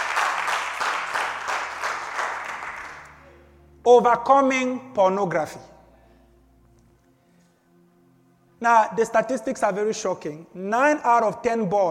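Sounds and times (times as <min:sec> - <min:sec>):
audience clapping: 0:00.0 - 0:03.2
speech: 0:03.9 - 0:05.7, 0:08.6 - 0:11.8.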